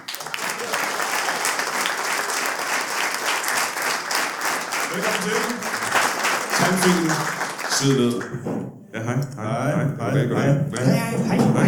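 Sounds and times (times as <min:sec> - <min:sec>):
audience applause at a live comedy show in Vejle: 0:00.0 - 0:08.3
speech: 0:05.0 - 0:05.8, 0:06.7 - 0:11.6.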